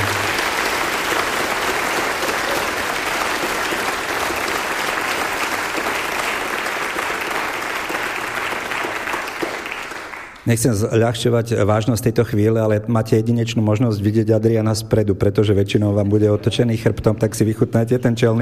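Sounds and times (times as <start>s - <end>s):
concert audience applause: 0.0s - 10.5s
speech: 10.5s - 18.4s.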